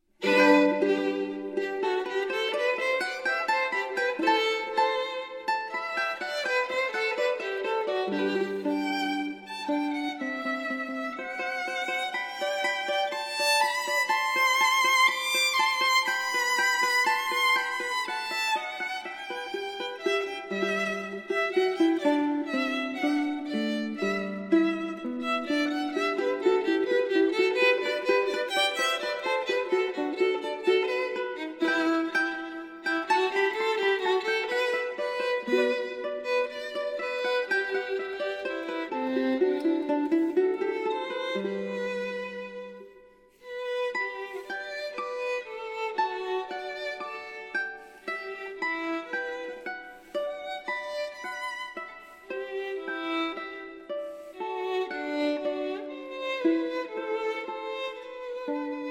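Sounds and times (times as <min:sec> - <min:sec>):
mandolin: 0:00.0 - 0:58.8
violin: 0:00.0 - 0:58.8.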